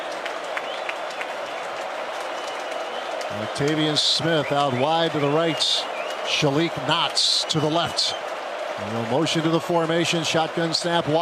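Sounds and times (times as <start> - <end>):
stadium crowd cheering: 0.0 - 11.2
speech: 3.3 - 8.2, 8.8 - 11.2.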